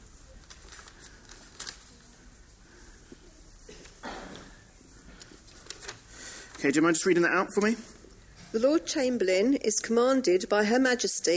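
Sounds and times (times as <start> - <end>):
red paper envelope holding an invitation crinkling as it is opened: 0.2 - 2.4, 5.2 - 6.6
speech: 6.6 - 11.3.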